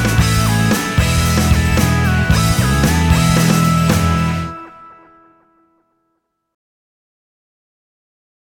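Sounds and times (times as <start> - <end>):
cheerful background music: 0.0 - 6.0.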